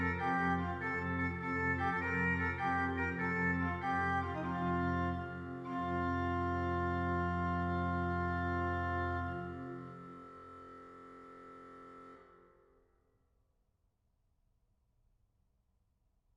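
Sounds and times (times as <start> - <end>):
organ playing: 0.0 - 12.4.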